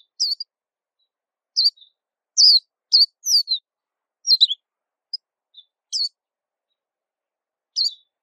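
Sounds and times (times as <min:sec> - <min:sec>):
white-eye song: 0:00.0 - 0:00.5, 0:01.6 - 0:06.2, 0:07.8 - 0:08.2.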